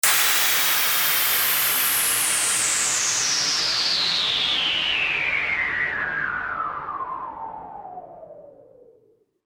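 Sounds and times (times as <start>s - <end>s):
whoosh: 0.0s - 6.9s.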